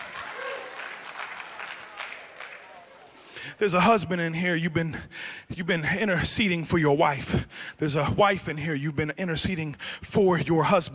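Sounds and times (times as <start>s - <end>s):
audience applauding: 0.0s - 3.3s
speech: 3.4s - 10.9s.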